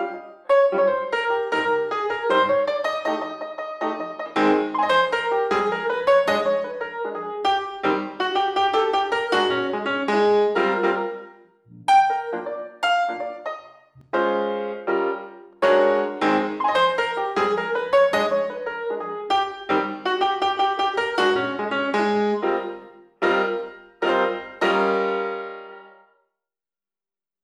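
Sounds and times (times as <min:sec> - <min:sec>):
lively cocktail piano: 0:00.0 - 0:26.0.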